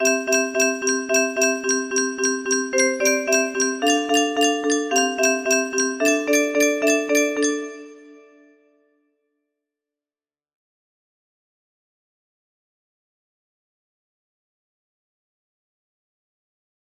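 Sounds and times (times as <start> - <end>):
music box melody: 0.0 - 8.4.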